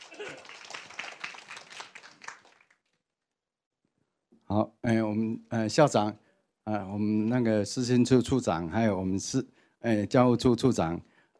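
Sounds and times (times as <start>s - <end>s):
audience applause: 0.0s - 2.8s
speech: 4.5s - 11.1s.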